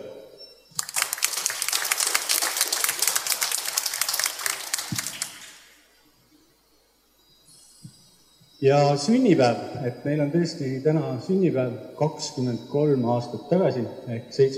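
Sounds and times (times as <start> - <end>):
audience applause: 0.8 - 5.8
speech: 8.6 - 14.5.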